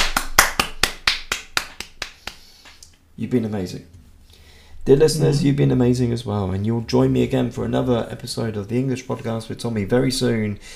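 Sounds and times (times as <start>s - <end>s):
sharp crisp hand claps: 0.0s - 3.0s
speech: 3.2s - 4.0s, 4.8s - 10.7s.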